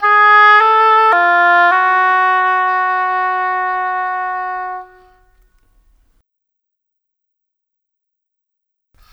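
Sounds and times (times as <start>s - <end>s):
cinematic oboes: 0.0s - 5.4s.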